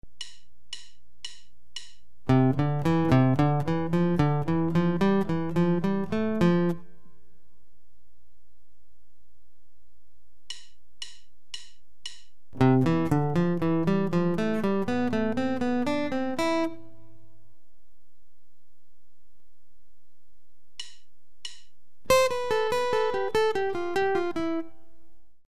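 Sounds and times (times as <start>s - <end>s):
guitar permutation exercises: 0.2s - 7.6s, 12.5s - 17.4s, 22.1s - 25.2s.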